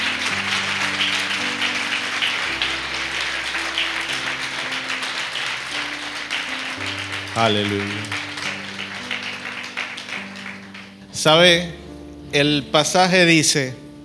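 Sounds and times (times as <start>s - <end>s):
audience applause: 0.0s - 11.1s
speech: 7.4s - 8.2s, 11.2s - 13.8s.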